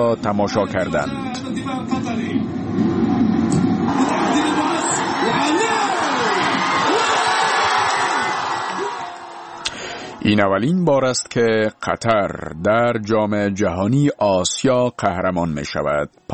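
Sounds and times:
speech: 0.0s - 2.6s, 10.2s - 16.3s
football fans cheering Qatar's Asian Cup win over Japan: 2.9s - 10.4s.

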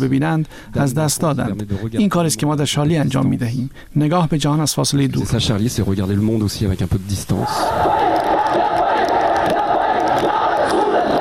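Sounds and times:
speech: 0.0s - 8.7s
angry protesters chanting death to France in Pakistan: 7.4s - 11.1s.

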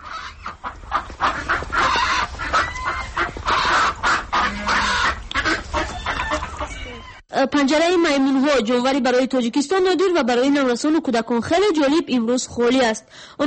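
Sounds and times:
ducks quacking at a zoo: 0.0s - 7.2s
speech: 7.4s - 13.4s.

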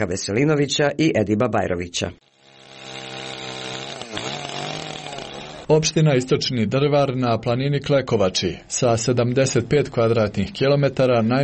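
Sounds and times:
speech: 0.0s - 2.3s, 5.7s - 11.4s
chainsaws running in forest: 2.2s - 6.0s.

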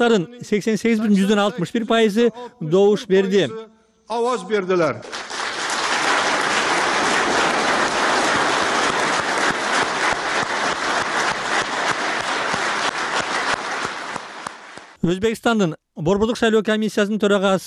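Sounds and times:
speech: 0.0s - 5.4s, 15.0s - 17.6s
crowd applauding in Tashkent after an election result announcement: 5.0s - 15.0s.

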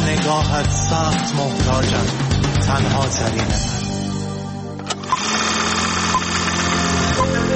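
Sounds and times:
speech: 0.1s - 3.8s
film projector running: 4.9s - 7.5s.

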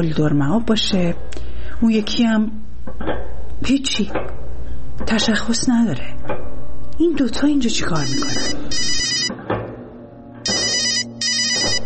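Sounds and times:
speech: 0.0s - 4.4s, 5.0s - 6.4s, 7.0s - 8.9s
mobile phone ringing: 8.0s - 9.3s, 10.4s - 11.8s.

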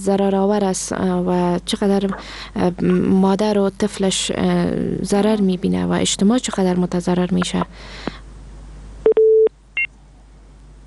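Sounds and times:
speech: 0.0s - 8.2s
telephone line tones as a caller's phone connection drops: 9.1s - 9.5s.

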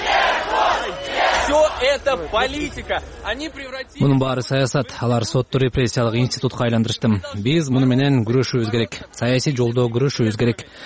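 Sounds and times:
crowd outside a courthouse chanting a convicted defendant's name: 0.0s - 1.8s
speech: 1.8s - 10.8s.

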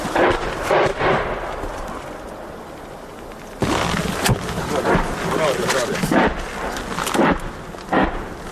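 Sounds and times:
Grad multiple rocket launcher firing: 0.0s - 1.7s, 3.6s - 8.5s.

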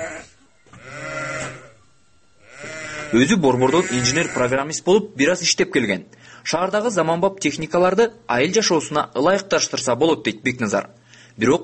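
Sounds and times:
livestock bleating in a herder's barn in At-Bashy: 0.0s - 4.7s
speech: 3.1s - 11.6s.

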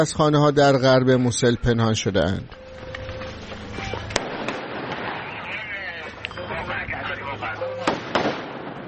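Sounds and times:
speech: 0.0s - 2.6s
gunfire exchange inside a house: 4.1s - 5.5s, 7.8s - 8.8s.

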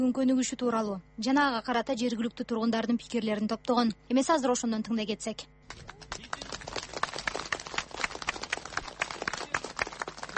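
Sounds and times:
speech: 0.0s - 6.1s
applause from more than 150 supporters outside the Kara-Buura district court: 5.7s - 10.3s.

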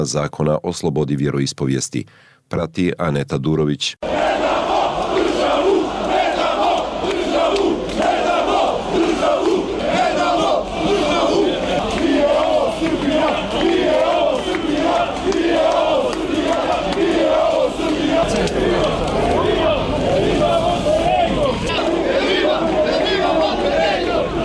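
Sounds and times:
speech: 0.0s - 4.4s
several thousand protesters chanting outside the Parliament of Montenegro: 4.0s - 24.4s.

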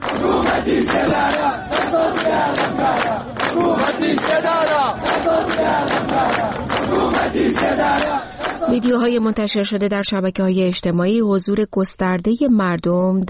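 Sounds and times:
crowd chanting anti-government slogans at a funeral in Saqqez: 0.0s - 9.3s
speech: 0.2s - 13.2s.

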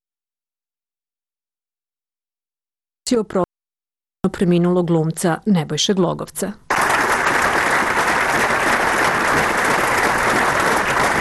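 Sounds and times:
speech: 3.1s - 3.5s, 4.2s - 6.6s
crowd ovation at the Yugoslav Drama Theatre in Belgrade: 6.7s - 11.1s.

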